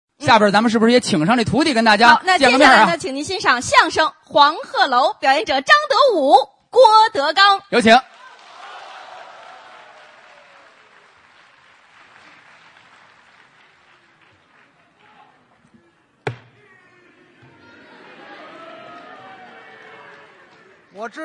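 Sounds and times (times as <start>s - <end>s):
speech: 0.3s - 8.1s, 21.0s - 21.2s
crowd clapping: 8.0s - 15.6s, 18.0s - 21.2s
sharp loud knock: 16.2s - 16.6s.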